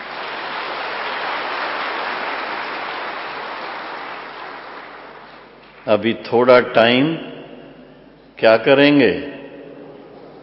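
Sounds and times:
audience clapping: 0:00.0 - 0:06.0
speech: 0:05.8 - 0:07.3, 0:08.4 - 0:09.3.

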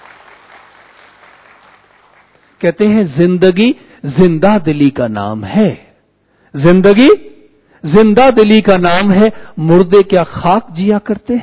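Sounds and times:
audience applause for a woman: 0:00.0 - 0:02.6
speech: 0:02.6 - 0:05.8, 0:06.5 - 0:11.4.

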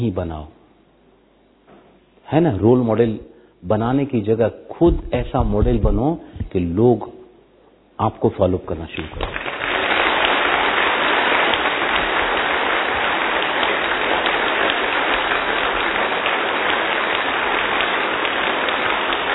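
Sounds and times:
speech: 0:00.0 - 0:00.6, 0:02.3 - 0:07.2, 0:08.0 - 0:09.4
audience applause: 0:09.2 - 0:19.3.

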